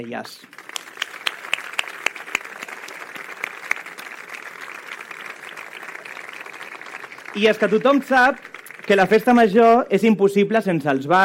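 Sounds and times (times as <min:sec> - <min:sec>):
speech: 0:00.0 - 0:00.7, 0:07.3 - 0:11.2
audience applause: 0:00.0 - 0:10.0.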